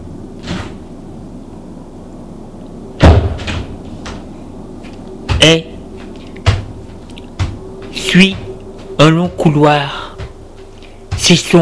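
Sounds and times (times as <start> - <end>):
heavy door thud: 3.0 - 3.8, 6.4 - 7.6
speech: 5.4 - 5.7, 8.2 - 8.4, 9.0 - 10.0, 11.2 - 11.6.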